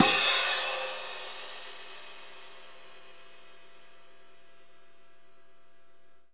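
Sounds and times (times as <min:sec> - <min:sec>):
orchestral concert cymbal crash: 0:00.0 - 0:04.3.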